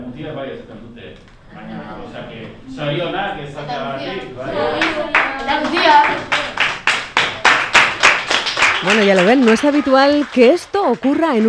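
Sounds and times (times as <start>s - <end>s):
speech: 0.2s - 6.3s, 8.8s - 11.4s
classmates clapping: 4.6s - 11.4s.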